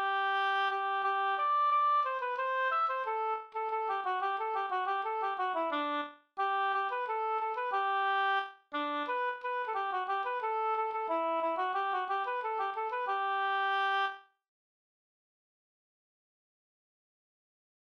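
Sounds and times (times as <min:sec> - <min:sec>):
folk song melody: 0:00.0 - 0:14.1.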